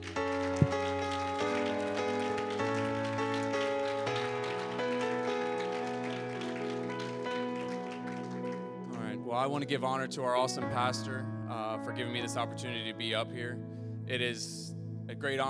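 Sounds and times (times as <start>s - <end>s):
crowd clapping: 0.0s - 9.1s
sustained keyboard chords: 0.0s - 15.4s
speech: 9.4s - 15.4s.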